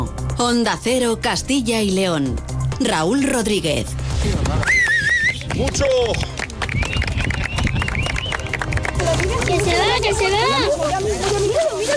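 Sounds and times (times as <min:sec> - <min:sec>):
speech: 0:00.4 - 0:04.8, 0:05.6 - 0:06.3, 0:09.5 - 0:11.9
crowd clapping at an eclipse: 0:04.6 - 0:11.9
crowd chatter: 0:08.8 - 0:11.9.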